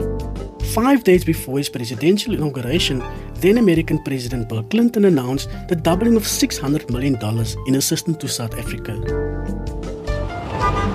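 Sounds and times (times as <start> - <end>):
speech: 0.7 - 9.2
cars, cabs and buses on 2nd Avenue in New York: 9.9 - 10.9.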